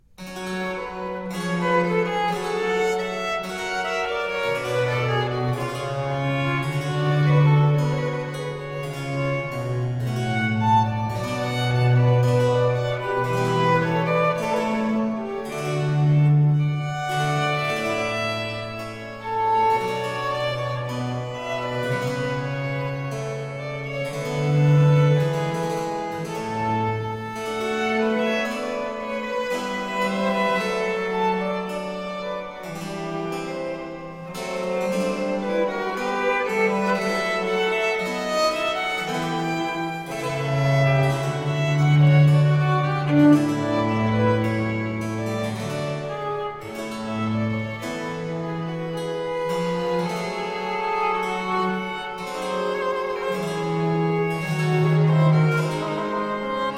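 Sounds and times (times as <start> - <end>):
two violins with continuo playing an adagio in B flat major: 0.0 - 56.7.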